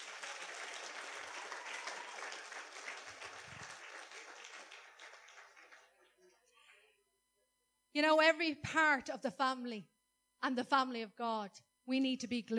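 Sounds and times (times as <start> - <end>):
crowd applause: 0.0 - 6.8
speech: 8.0 - 12.5.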